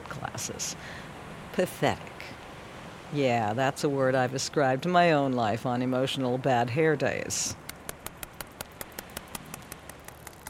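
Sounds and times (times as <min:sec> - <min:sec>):
speech: 0:00.4 - 0:02.1, 0:03.1 - 0:07.6
whale clicking calls: 0:07.6 - 0:10.4.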